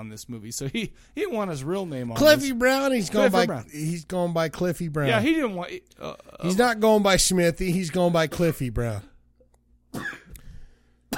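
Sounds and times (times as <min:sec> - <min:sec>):
speech: 0:00.0 - 0:09.1
sneeze: 0:09.9 - 0:10.3.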